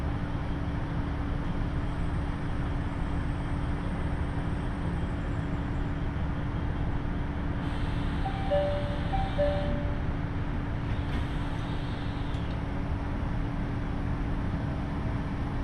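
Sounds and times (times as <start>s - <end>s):
KiHa 75 diesel railcar on the Taita Line rumbling: 0.0s - 15.6s
short high beeps: 8.3s - 10.1s.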